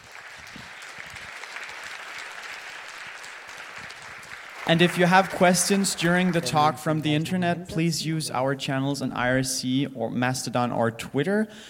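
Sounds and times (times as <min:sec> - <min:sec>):
audience clapping: 0:00.0 - 0:07.4
speech: 0:04.7 - 0:11.6.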